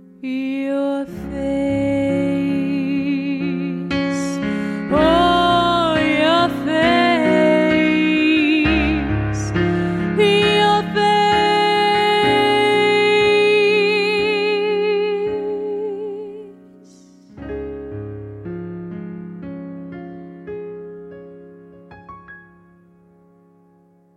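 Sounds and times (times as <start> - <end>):
vocal music: 0.0 - 17.7.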